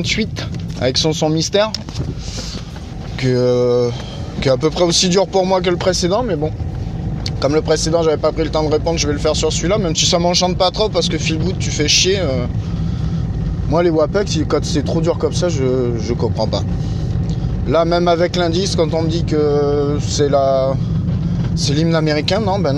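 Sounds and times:
speech: 0.0s - 2.6s, 3.2s - 6.7s, 7.4s - 12.8s, 13.7s - 17.0s, 17.7s - 20.9s, 21.6s - 22.7s
car interior noise: 0.0s - 22.7s.

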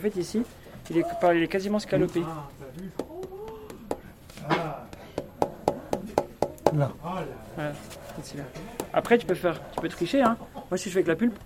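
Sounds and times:
speech: 0.0s - 3.1s, 6.7s - 11.4s
hand tapping a wooden desk: 2.8s - 4.2s, 4.9s - 6.9s, 8.6s - 10.4s.

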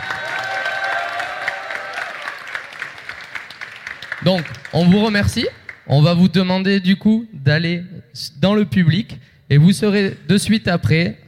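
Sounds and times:
cheering: 0.0s - 4.7s
audience applause: 0.0s - 5.8s
speech: 4.2s - 11.2s.

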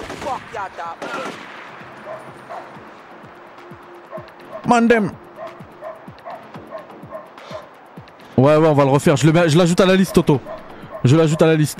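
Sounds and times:
gunfire in the video game GTA 4: 0.0s - 1.8s
speech: 0.3s - 3.0s, 3.7s - 5.2s, 8.4s - 11.7s.

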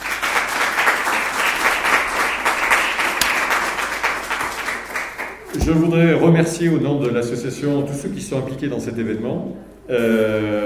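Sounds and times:
audience applause: 0.0s - 5.6s
speech: 5.6s - 10.6s.

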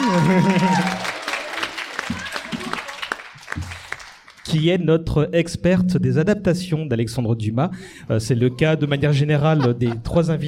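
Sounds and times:
laughter: 0.0s - 1.0s, 8.4s - 10.4s
audience applause: 0.0s - 4.5s
speech: 0.2s - 1.1s, 4.6s - 10.4s.

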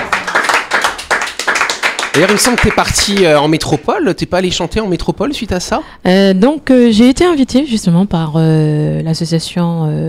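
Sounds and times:
clapping: 0.0s - 3.8s
speech: 2.1s - 10.0s.

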